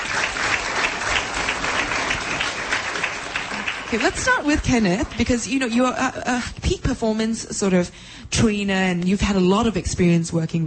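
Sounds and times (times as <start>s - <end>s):
audience applause: 0.0s - 5.2s
speech: 3.9s - 10.6s.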